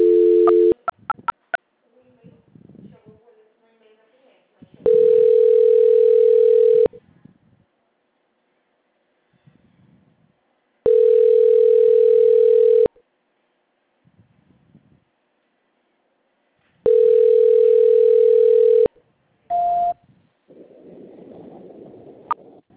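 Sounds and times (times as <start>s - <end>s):
telephone line tone during a call transfer: 0.0s - 1.5s, 4.8s - 6.9s, 10.9s - 12.9s, 16.9s - 18.9s, 19.5s - 20.0s.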